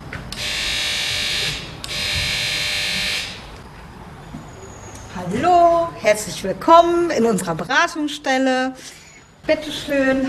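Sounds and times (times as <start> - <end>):
doorbell buzzer: 0.4 - 3.6
speech: 6.1 - 10.2.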